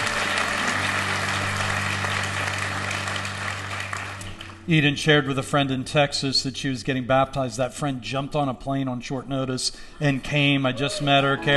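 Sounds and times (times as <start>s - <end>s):
audience applauding: 0.0s - 4.7s
speech: 4.7s - 11.5s.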